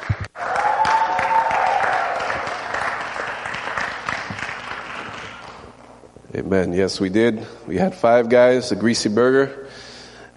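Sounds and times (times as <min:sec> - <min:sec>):
congregation applause in a church welcoming a visiting pastor: 0:00.0 - 0:05.8
speech: 0:06.4 - 0:09.8.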